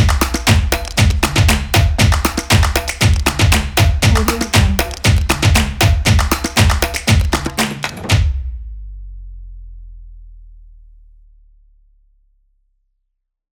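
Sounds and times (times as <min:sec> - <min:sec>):
percussion: 0:00.0 - 0:08.8.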